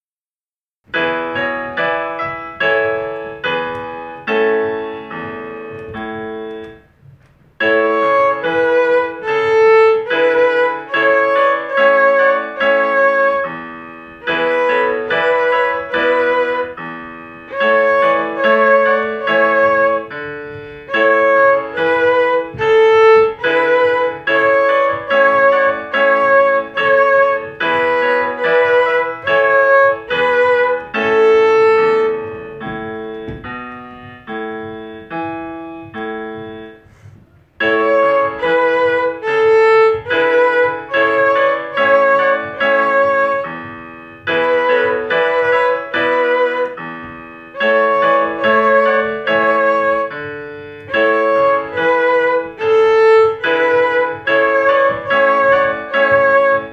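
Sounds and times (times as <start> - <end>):
violin melody on A: 0.9 - 56.7.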